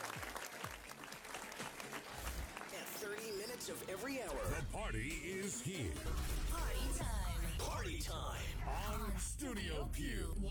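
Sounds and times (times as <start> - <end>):
club party crowd clapping after a DJ set: 0.0 - 5.8
speech: 3.0 - 10.4.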